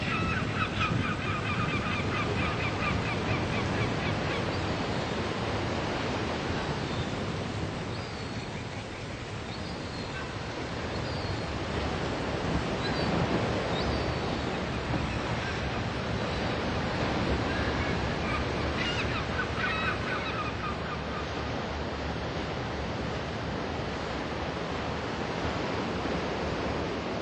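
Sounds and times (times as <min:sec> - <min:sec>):
seagulls calling: 0:00.0 - 0:06.1, 0:07.9 - 0:22.4
sea: 0:00.0 - 0:27.1.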